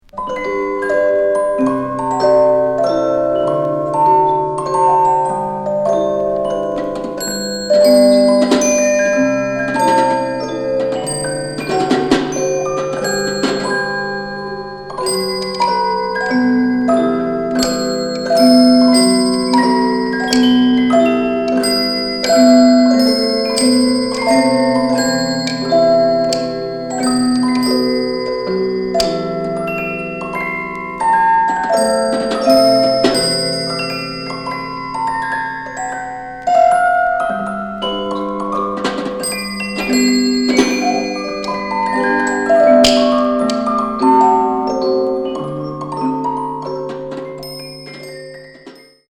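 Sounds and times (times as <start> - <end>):
mechanical musical instrument: 0.1 - 49.0.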